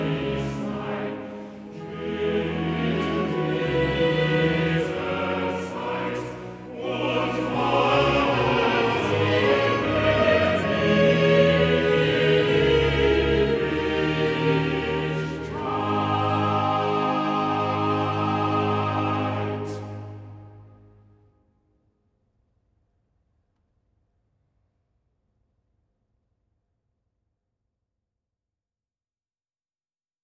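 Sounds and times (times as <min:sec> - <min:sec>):
choral cantata: 0:00.0 - 0:21.0.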